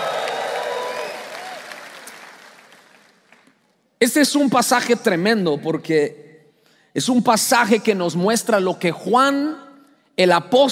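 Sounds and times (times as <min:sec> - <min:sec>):
audience shouting praise and cheering: 0:00.0 - 0:03.0
audience applause: 0:00.0 - 0:03.5
speech: 0:04.0 - 0:06.2, 0:06.9 - 0:09.6, 0:10.2 - 0:10.7.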